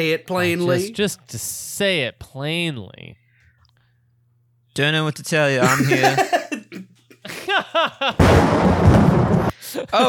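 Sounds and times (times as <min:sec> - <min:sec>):
speech: 0:00.0 - 0:03.2, 0:04.8 - 0:06.4, 0:07.5 - 0:10.0
laughter: 0:00.4 - 0:00.9, 0:05.6 - 0:08.2, 0:09.6 - 0:10.0
gunshot in a video game: 0:08.2 - 0:09.5.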